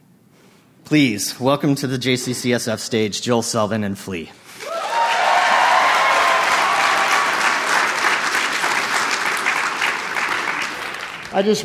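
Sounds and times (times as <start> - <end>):
speech: 0.9 - 4.4, 11.3 - 11.6
audience applause: 4.6 - 11.6.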